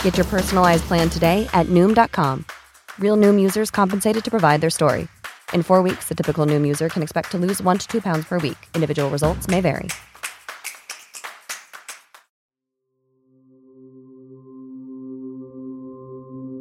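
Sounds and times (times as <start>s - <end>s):
steam train rumbling: 0.0s - 2.5s
speech: 0.0s - 10.1s
sharp clapping: 0.0s - 12.3s.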